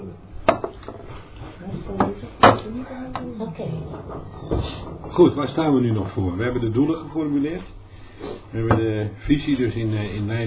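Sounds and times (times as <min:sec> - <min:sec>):
wooden knocks: 0:00.4 - 0:01.1, 0:01.7 - 0:07.9, 0:08.6 - 0:09.0
speech: 0:02.8 - 0:07.8, 0:08.5 - 0:10.4
door pushed shut during a meeting: 0:03.6 - 0:06.8.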